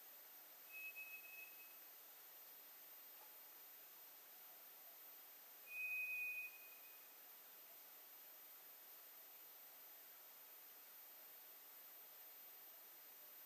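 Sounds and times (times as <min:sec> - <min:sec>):
faint hiss: 0:00.0 - 0:13.4
White's thrush high whistle song: 0:00.7 - 0:01.8, 0:05.7 - 0:07.1.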